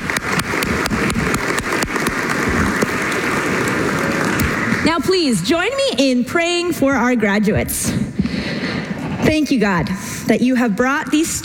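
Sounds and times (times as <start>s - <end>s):
audience applause: 0.0s - 5.2s
speech: 4.8s - 8.5s, 9.3s - 11.4s.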